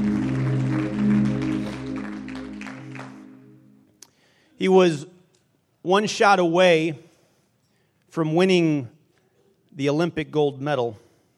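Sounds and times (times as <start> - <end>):
audience clapping hands: 0.0 - 3.8
speech: 4.6 - 5.1, 5.8 - 7.0, 8.1 - 8.9, 9.8 - 11.0.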